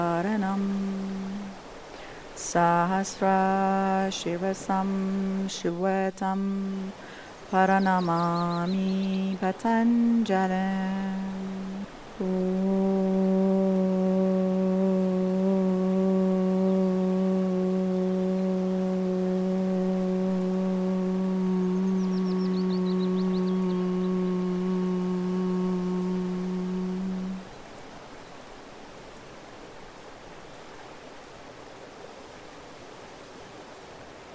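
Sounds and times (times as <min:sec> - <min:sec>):
opening chanting for yoga: 0:00.0 - 0:01.6, 0:02.4 - 0:27.5.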